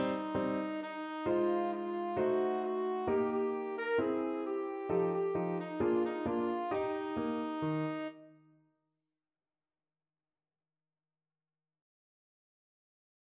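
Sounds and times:
tenor saxophone: 0.0s - 8.4s.

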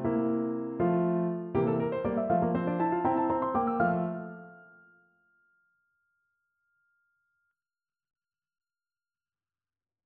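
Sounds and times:
piano: 0.0s - 5.0s.

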